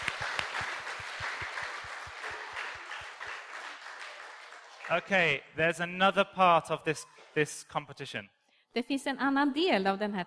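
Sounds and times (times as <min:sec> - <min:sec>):
group applauding: 0:00.0 - 0:05.4
speech: 0:04.9 - 0:10.2.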